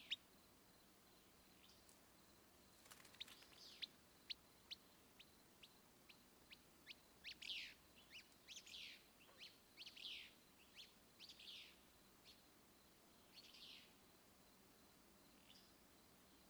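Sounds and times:
Willow flycatcher chirps and buzzy notes: 1.6s - 12.4s.

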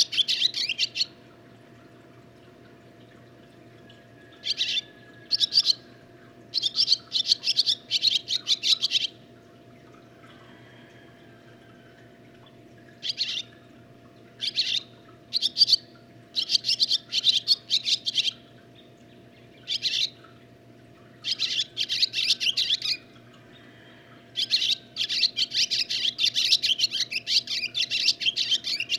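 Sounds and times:
barn swallow twittering: 0.0s - 1.2s, 4.4s - 5.9s, 6.5s - 9.2s, 13.0s - 13.6s, 14.4s - 18.4s, 19.6s - 20.2s, 21.2s - 28.9s.

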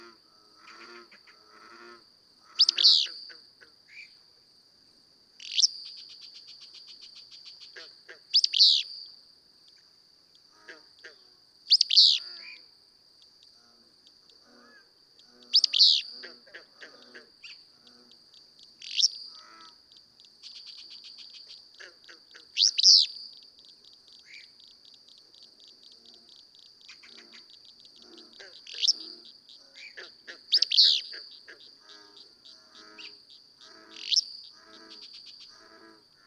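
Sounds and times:
Willow Flycatcher calling: 2.4s - 4.1s, 5.4s - 9.0s, 11.7s - 12.7s, 14.1s - 36.2s.

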